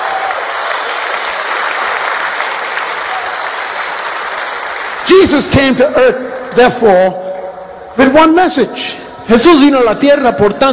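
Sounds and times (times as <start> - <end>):
congregation applauding at a church service: 0.0 - 6.9
speech: 5.1 - 7.2, 8.0 - 10.7.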